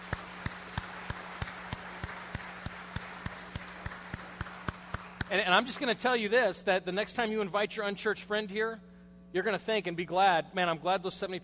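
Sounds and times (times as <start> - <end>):
audience clapping: 0.0 - 6.0
speech: 5.3 - 11.4.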